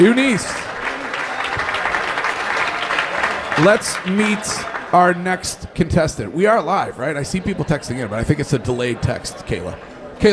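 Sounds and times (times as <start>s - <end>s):
speech: 0.0s - 0.7s, 3.6s - 10.3s
round of applause: 0.0s - 5.2s.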